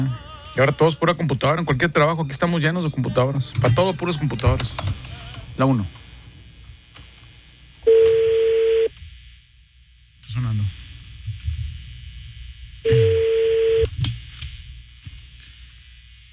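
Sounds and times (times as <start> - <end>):
speech: 0.0 - 6.0
phone line ringing tone: 7.9 - 8.9, 12.9 - 13.9.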